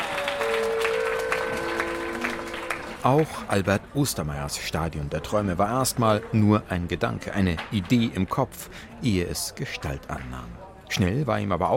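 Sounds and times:
audience applause: 0.0 - 3.6
speech: 3.0 - 11.7.

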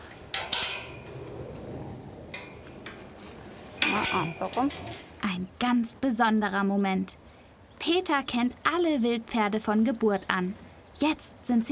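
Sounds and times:
metal gate being opened: 0.0 - 1.2, 2.3 - 3.0, 3.7 - 5.2
speech: 4.1 - 7.2, 7.8 - 11.7.

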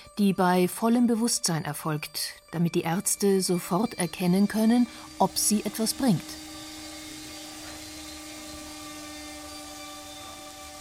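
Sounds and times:
speech: 0.2 - 6.4
neurosurgeon's drill boring a hole into a Parkinson patient's skull: 3.7 - 10.7.

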